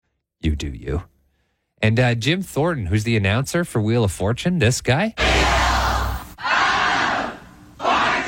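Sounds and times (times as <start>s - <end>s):
speech: 0.4s - 1.1s, 1.8s - 5.4s
studio crowd roaring and cheering: 5.2s - 8.2s.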